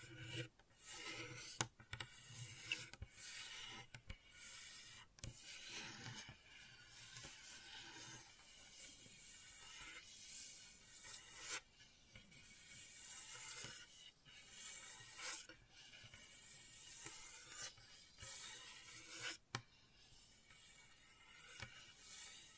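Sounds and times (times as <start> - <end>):
gentle raspy scratching: 0.0 - 22.5.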